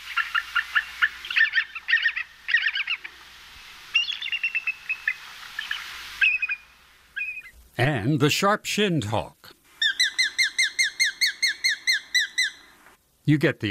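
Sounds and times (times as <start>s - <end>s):
bald eagle high thin chittering call: 0.0s - 7.6s, 9.7s - 12.8s
speech: 7.8s - 9.4s, 13.3s - 13.6s.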